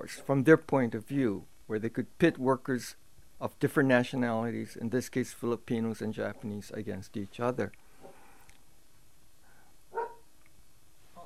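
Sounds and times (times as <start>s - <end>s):
speech: 0.0s - 7.8s
dog barking: 9.9s - 10.2s.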